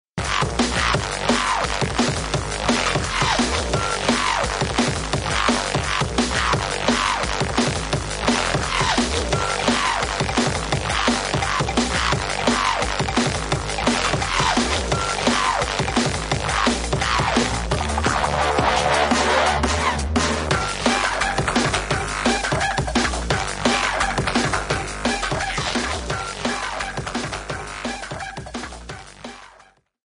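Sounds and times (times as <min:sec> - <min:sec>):
drum and bass music: 0:00.2 - 0:30.0.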